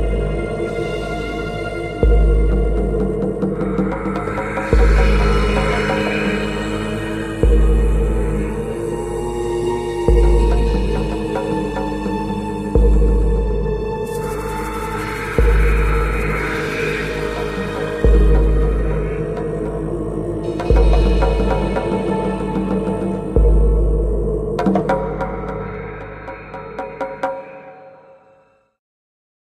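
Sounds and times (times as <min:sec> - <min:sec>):
zombie plague ambience: 0:00.0 - 0:28.6.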